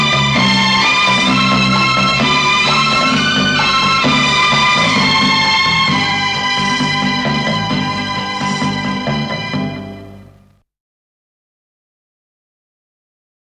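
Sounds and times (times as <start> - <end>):
silver trumpet: 0.0 - 10.6.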